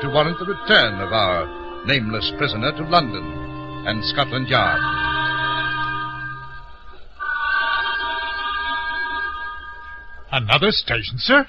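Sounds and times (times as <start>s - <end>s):
speech: 0.0s - 5.0s, 10.4s - 11.4s
steam train whistle: 0.0s - 8.6s.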